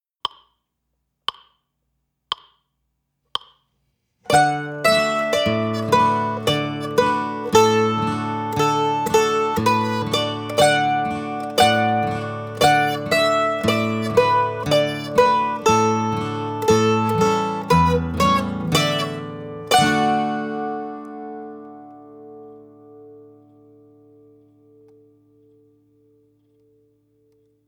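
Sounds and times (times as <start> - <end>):
mandolin playing double stops: 4.3 - 22.2.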